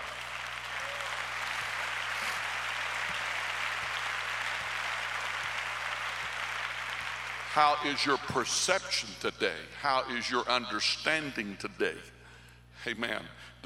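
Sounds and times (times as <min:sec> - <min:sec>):
audience clapping: 0:00.0 - 0:09.1
speech: 0:07.6 - 0:12.2, 0:12.8 - 0:13.6.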